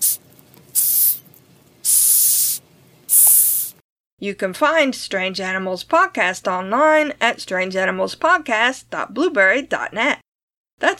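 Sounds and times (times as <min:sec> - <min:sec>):
hissing cockroach hissing: 0:00.0 - 0:00.2, 0:00.8 - 0:01.2, 0:01.8 - 0:03.8
speech: 0:04.2 - 0:10.2, 0:10.8 - 0:10.9.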